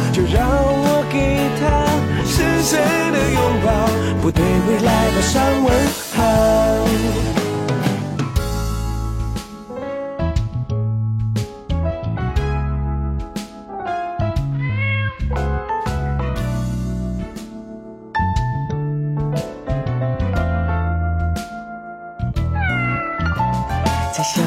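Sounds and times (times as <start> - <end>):
music with heavy bass: 0.0 - 24.4
speech: 4.2 - 7.3
cat meowing: 14.5 - 15.3, 22.5 - 23.7.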